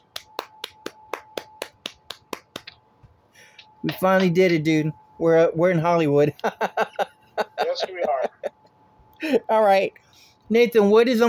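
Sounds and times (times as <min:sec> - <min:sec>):
hand clapping: 0:00.0 - 0:04.6
speech: 0:03.8 - 0:07.1, 0:07.8 - 0:08.2, 0:09.2 - 0:11.2
laughter: 0:06.3 - 0:08.6.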